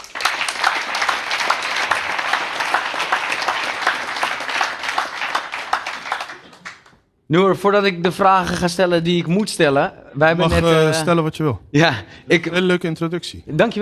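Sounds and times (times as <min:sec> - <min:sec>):
audience applause: 0:00.0 - 0:06.9
speech: 0:07.3 - 0:13.8.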